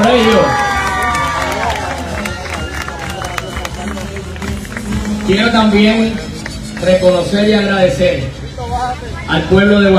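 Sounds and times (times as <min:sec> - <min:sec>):
audience applause: 0:00.0 - 0:05.5
speech: 0:05.3 - 0:08.4, 0:09.0 - 0:09.9.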